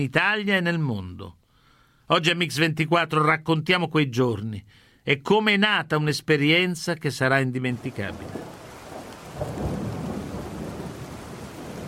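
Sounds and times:
speech: 0.0 - 1.4, 2.1 - 8.6
rain in Toscana: 7.7 - 11.8
thunder: 8.2 - 11.8.

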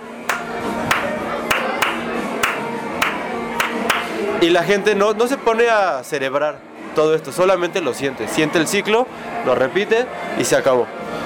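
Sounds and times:
people clapping their hands in a 7/8 rhythm: 0.3 - 4.1
speech: 4.4 - 11.0.

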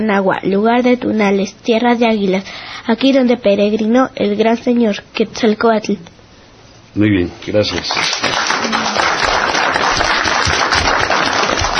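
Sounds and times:
speech: 0.0 - 6.2, 6.9 - 8.3
hands clapping: 7.7 - 11.7.

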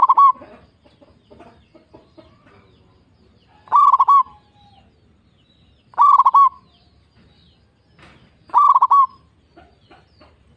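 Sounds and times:
zebra dove cooing: 0.0 - 0.8, 3.5 - 4.8, 5.9 - 6.7, 8.5 - 10.4.

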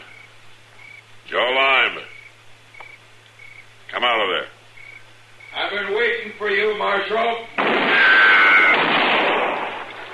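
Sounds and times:
speech: 1.3 - 2.1, 4.0 - 4.6, 5.7 - 7.9
gunshot in a radio western drama showdown: 7.6 - 10.1.

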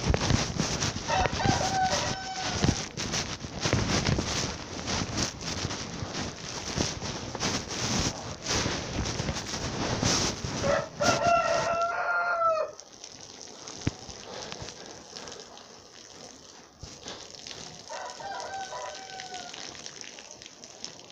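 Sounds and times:
rough crackling noise: 0.0 - 21.0
rooster crowing: 1.1 - 2.8, 10.6 - 12.8, 17.9 - 19.6.

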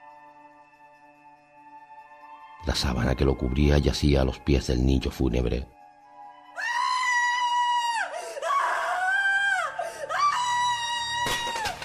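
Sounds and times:
speech: 2.6 - 5.8
woman screaming in alarm and anguish: 6.6 - 11.8.

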